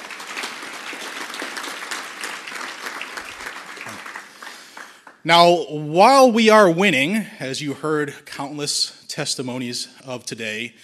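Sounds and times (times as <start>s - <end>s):
audience applause: 0.0s - 5.2s
speech: 5.2s - 10.8s.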